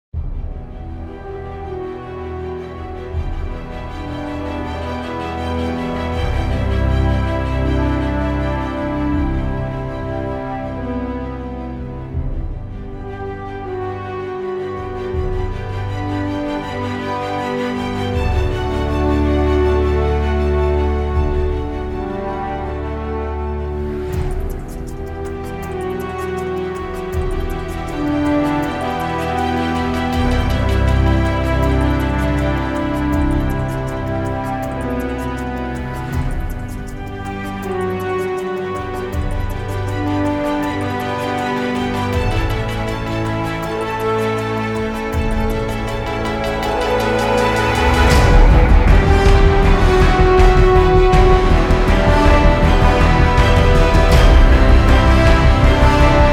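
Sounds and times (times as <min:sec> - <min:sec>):
epic action and adventure instrumental music: 0:00.1 - 0:56.3.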